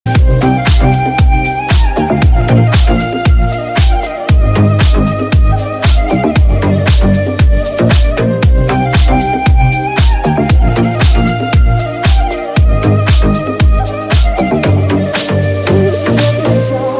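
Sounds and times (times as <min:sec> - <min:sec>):
deep house music: 0:00.1 - 0:16.9.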